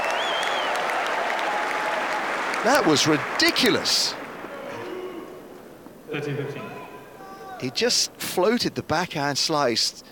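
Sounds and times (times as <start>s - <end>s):
tennis crowd applauding a winner: 0.0s - 5.5s
speech: 2.6s - 4.2s, 6.1s - 6.8s, 7.6s - 10.1s.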